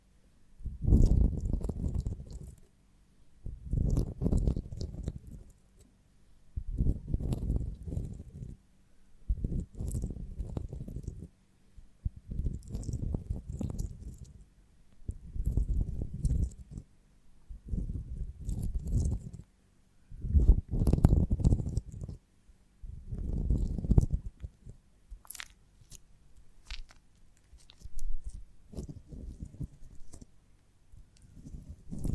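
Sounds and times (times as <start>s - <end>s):
honeycomb on a branch being bitten and chewed: 0.7s - 2.7s, 3.5s - 5.9s, 6.6s - 8.6s, 9.3s - 11.3s, 12.1s - 16.9s, 17.5s - 19.5s, 20.2s - 22.2s, 23.0s - 30.3s, 31.0s - 32.1s.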